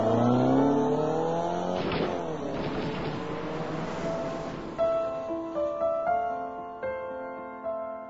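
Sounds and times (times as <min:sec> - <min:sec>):
car engine accelerating: 0:00.0 - 0:06.1.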